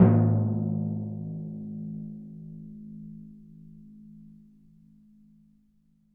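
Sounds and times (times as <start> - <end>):
Synclavier timpani note: 0.0 - 1.9.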